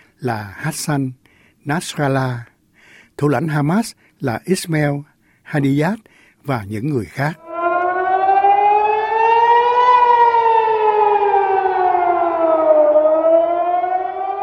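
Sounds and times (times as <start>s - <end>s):
speech: 0.2s - 2.5s, 3.2s - 7.4s
air raid siren wailing: 7.4s - 14.4s.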